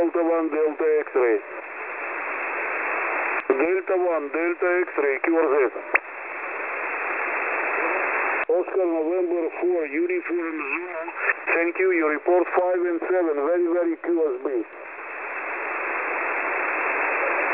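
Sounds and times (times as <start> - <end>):
ham radio transmission on 14244.0 kHz: 0.0 - 17.5.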